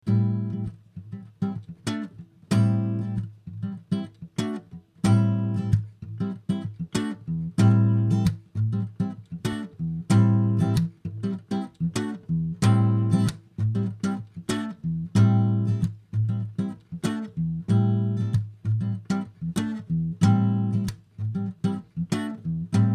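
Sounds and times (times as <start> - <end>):
mellow grooving guitar: 0.0 - 22.9.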